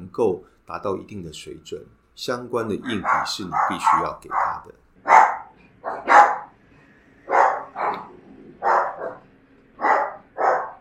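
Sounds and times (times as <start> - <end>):
speech: 0.2 - 4.8
small dogs barking: 2.6 - 6.6, 7.3 - 10.8.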